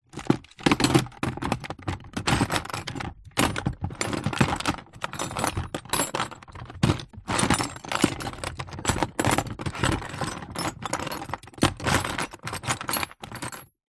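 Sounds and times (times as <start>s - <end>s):
rummaging in industrial plastic tool box: 0.0s - 13.8s.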